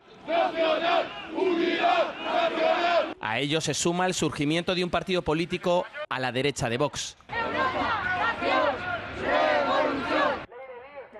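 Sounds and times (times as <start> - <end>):
crowd shouting chants at a Francoist demonstration in Spain: 0.0 - 3.2, 7.3 - 10.5
speech: 0.3 - 7.3.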